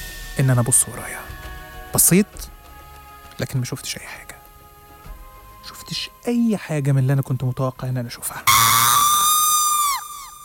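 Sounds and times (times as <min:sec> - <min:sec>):
speech: 0:00.4 - 0:01.3, 0:01.9 - 0:02.6, 0:03.4 - 0:04.3, 0:05.9 - 0:08.5
terrifying scream: 0:08.5 - 0:10.4.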